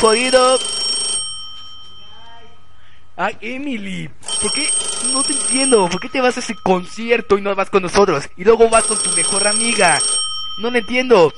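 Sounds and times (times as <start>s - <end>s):
speech: 0.0s - 0.8s, 3.2s - 11.3s
telephone ringing while calling someone: 0.0s - 2.2s, 4.2s - 7.3s, 8.7s - 11.3s.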